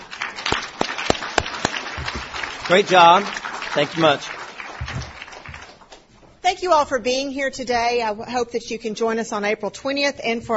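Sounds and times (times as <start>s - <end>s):
audience applause: 0.0s - 6.0s
speech: 2.7s - 4.4s, 6.6s - 10.5s.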